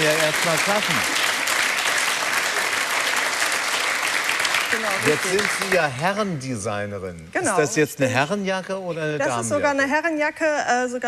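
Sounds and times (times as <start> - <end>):
audience applause: 0.0 - 6.3
speech: 0.3 - 1.3, 4.7 - 11.0.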